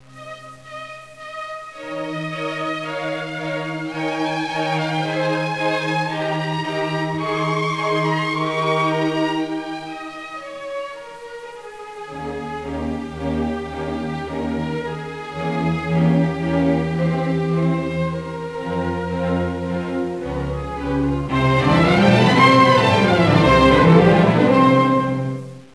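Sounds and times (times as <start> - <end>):
orchestra playing a symphony: 0.2 - 25.7.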